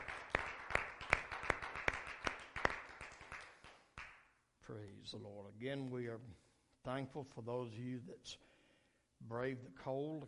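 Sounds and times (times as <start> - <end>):
audience hand clapping: 0.0 - 4.3
speech: 4.7 - 8.5, 9.2 - 10.2.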